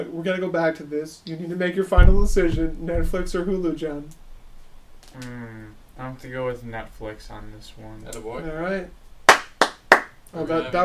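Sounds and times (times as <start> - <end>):
speech: 0.0 - 4.2, 5.1 - 9.0, 10.3 - 10.8
hand clapping: 9.3 - 10.4.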